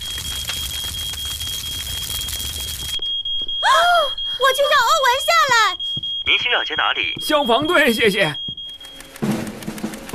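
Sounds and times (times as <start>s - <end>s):
loud crackling and splintering: 0.0s - 3.0s
smoke alarm sounding a shrill high-pitched tone: 0.0s - 9.2s
speech: 6.3s - 8.5s.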